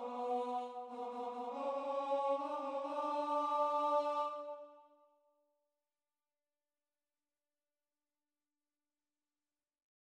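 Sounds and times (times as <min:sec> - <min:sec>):
tenor singing: 0:00.0 - 0:04.7.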